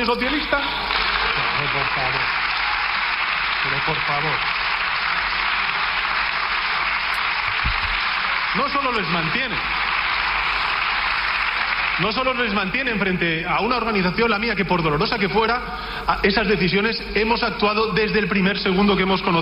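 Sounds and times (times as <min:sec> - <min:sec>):
speech: 0:00.0 - 0:02.4, 0:03.6 - 0:04.6, 0:08.5 - 0:09.8, 0:12.0 - 0:19.4
applause in parliament: 0:00.0 - 0:14.0.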